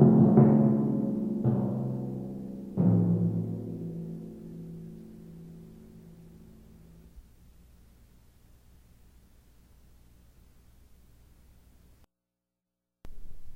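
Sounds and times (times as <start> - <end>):
timpani: 0.0 - 7.2.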